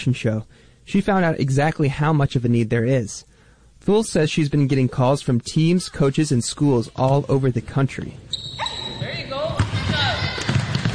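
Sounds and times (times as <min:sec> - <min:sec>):
speech: 0:00.0 - 0:08.6
high chirping squeaks: 0:08.3 - 0:09.5
basketball dribbled in the Brian Coyle Center gym: 0:08.4 - 0:10.9.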